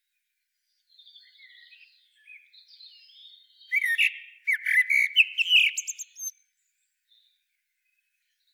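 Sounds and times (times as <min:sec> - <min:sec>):
common blackbird Turdus merula singing: 0:00.9 - 0:06.3.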